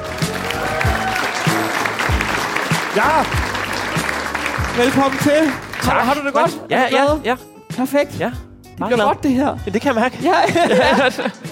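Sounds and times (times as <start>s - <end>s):
comedy show audience applause welcoming a comedian: 0.0s - 6.6s
speech: 3.0s - 3.5s, 4.8s - 11.4s
laughter: 10.2s - 11.4s.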